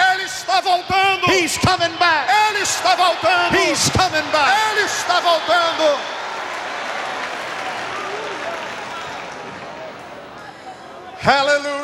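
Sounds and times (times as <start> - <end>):
speech: 0.6 - 6.2, 11.2 - 11.8
audience applauding: 2.4 - 11.0.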